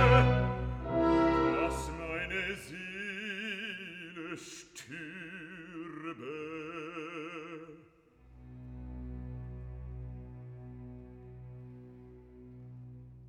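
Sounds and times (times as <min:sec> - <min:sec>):
alto singing recitative: 0:00.0 - 0:02.7.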